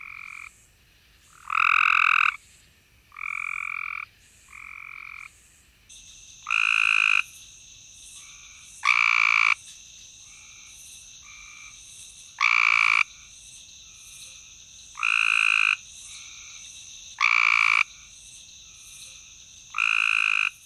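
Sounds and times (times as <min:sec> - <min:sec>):
Cope's grey tree frog Hyla chrysoscelis calling: 0:00.0 - 0:00.6, 0:01.2 - 0:02.4, 0:03.1 - 0:07.4, 0:08.1 - 0:09.6, 0:10.2 - 0:20.6.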